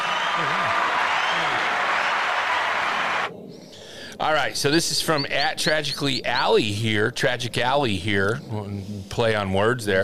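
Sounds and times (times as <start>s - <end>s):
crowd clapping: 0.0s - 3.3s
speech: 0.4s - 1.5s, 4.2s - 10.0s.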